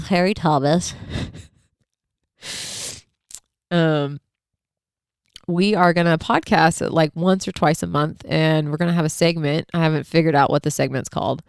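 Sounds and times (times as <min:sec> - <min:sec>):
speech: 0:00.1 - 0:01.5, 0:03.7 - 0:04.2, 0:05.5 - 0:11.4
person blowing nose: 0:02.4 - 0:03.1.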